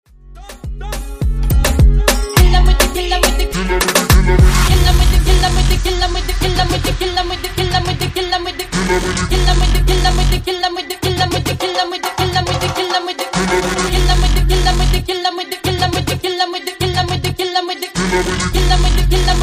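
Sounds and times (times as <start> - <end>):
clean 90s moombahton music: 0.1 - 19.4.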